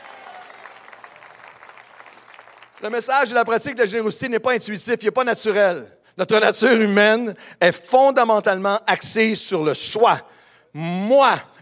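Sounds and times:
church congregation clapping: 0:00.0 - 0:04.1
speech: 0:02.8 - 0:11.6.

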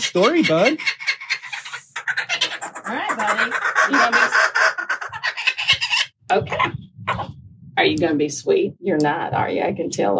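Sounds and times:
speech: 0:00.0 - 0:01.0, 0:02.9 - 0:04.5, 0:06.3 - 0:07.2, 0:07.8 - 0:10.1
kookaburra cackling: 0:00.0 - 0:07.3.

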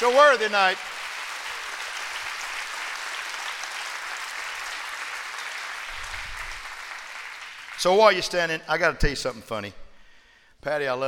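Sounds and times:
speech: 0:00.0 - 0:01.0, 0:07.8 - 0:09.8, 0:10.6 - 0:11.0
audience clapping hands: 0:00.0 - 0:08.4.

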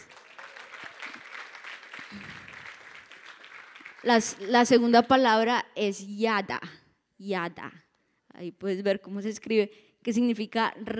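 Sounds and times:
audience applause: 0:00.0 - 0:04.7
speech: 0:04.0 - 0:07.8, 0:08.4 - 0:10.9.

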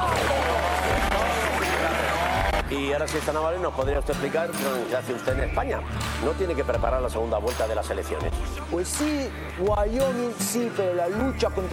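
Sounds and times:
audience applause: 0:00.0 - 0:02.9
speech: 0:02.7 - 0:11.7.

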